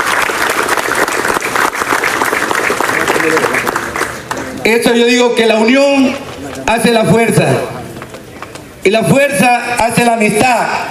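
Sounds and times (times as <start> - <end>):
audience applause: 0.0 - 4.6
speech: 4.7 - 7.8, 8.8 - 10.8.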